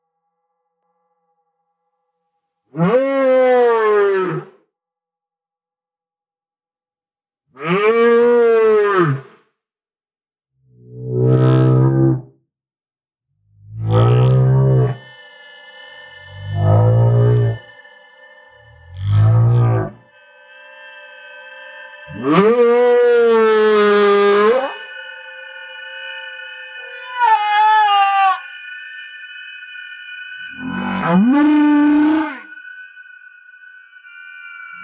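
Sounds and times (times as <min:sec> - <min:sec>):
stellar ocean whale: 0:02.7 - 0:04.6, 0:07.6 - 0:09.4, 0:10.8 - 0:12.3, 0:13.6 - 0:15.1, 0:16.3 - 0:17.7, 0:18.6 - 0:20.0, 0:22.1 - 0:24.8, 0:26.8 - 0:28.6, 0:30.4 - 0:32.9, 0:33.5 - 0:34.8.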